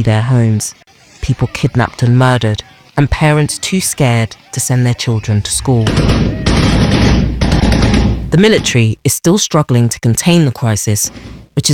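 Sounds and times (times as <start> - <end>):
speech: 0.0 - 7.3, 8.3 - 11.7
gunshots from gunmen on motorbikes in a village in northwest Nigeria: 5.5 - 8.8.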